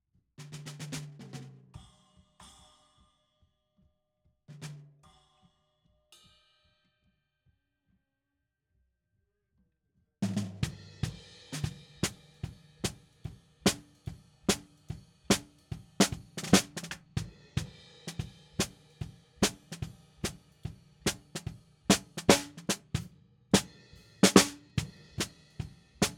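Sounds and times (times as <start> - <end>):
snare drum: 10.2 - 26.1.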